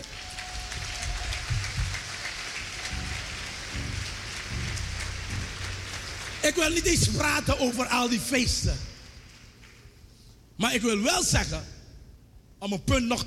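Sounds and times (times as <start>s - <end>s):
audience applause: 0.0s - 7.4s
speech: 6.5s - 8.9s, 10.6s - 11.7s, 12.6s - 13.2s.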